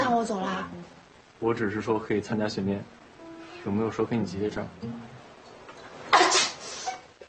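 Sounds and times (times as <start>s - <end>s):
speech: 0.2s - 3.0s, 3.6s - 5.1s
person sneezing: 6.1s - 7.1s.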